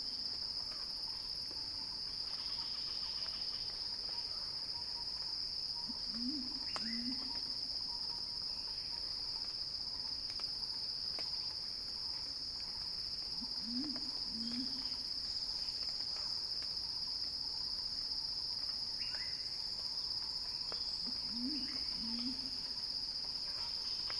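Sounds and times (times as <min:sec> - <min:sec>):
cicada drone: 0:00.0 - 0:24.1.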